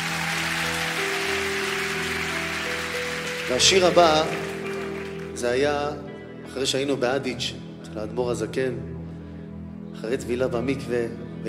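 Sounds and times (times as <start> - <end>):
audience applause: 0.0 - 5.5
speech: 3.5 - 4.4, 5.4 - 6.0, 6.6 - 8.9, 10.0 - 11.4.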